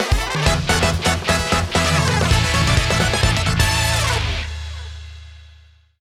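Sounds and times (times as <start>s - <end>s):
win jingle: 0.4s - 4.2s.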